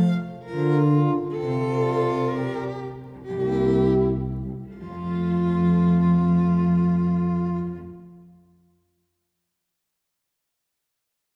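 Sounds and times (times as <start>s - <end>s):
string quartet playing a slow piece: 0.0s - 8.5s.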